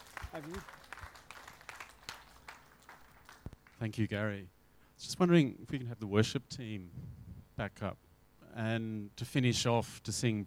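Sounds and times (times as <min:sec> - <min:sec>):
scattered audience applause: 0:00.0 - 0:03.8
speech: 0:00.4 - 0:00.8, 0:03.8 - 0:10.4.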